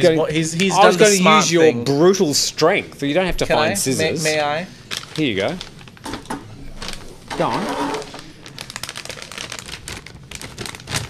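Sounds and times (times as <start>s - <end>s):
speech: 0.0s - 5.7s, 7.4s - 7.9s
chocolate packaging being unwrapped: 4.8s - 11.0s.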